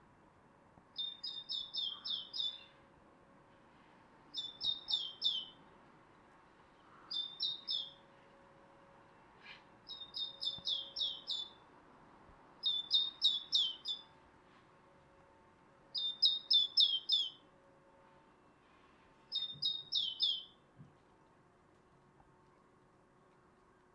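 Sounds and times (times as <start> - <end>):
great tit calls: 1.0 - 2.8, 4.4 - 5.6, 6.9 - 8.0, 9.9 - 11.6, 12.6 - 14.1, 16.0 - 17.4, 19.3 - 20.6.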